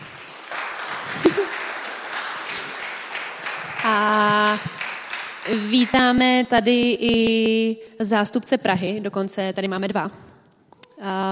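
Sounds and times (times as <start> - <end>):
audience applause at a live gathering: 0.0 - 6.0
speech: 5.5 - 10.3, 11.0 - 11.3.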